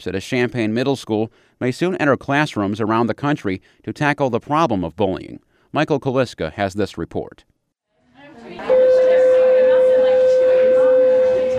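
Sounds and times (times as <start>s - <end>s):
speech: 0.0s - 7.5s
school bell ringing: 8.4s - 11.5s.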